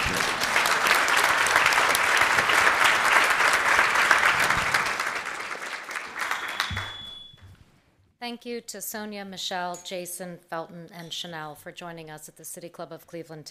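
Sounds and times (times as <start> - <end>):
room full of people clapping: 0.0 - 7.4
speech: 8.3 - 13.4.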